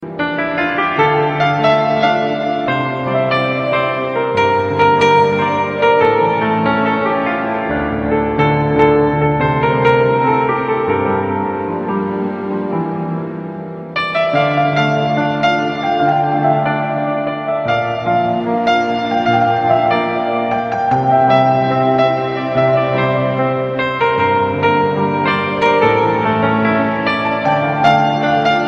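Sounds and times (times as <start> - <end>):
piano: 0.0 - 28.6.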